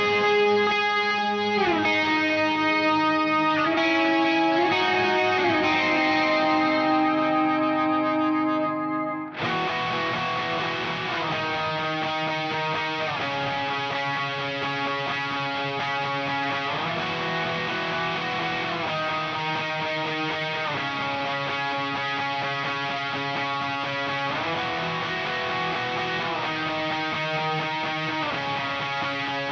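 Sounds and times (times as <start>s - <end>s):
bass guitar: 0.0s - 29.5s.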